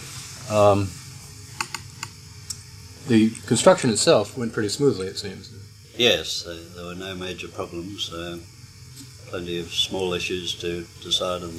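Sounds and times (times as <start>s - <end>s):
speech: 0.5s - 1.0s, 3.1s - 11.5s
tape recorder control clicks: 1.6s - 2.1s.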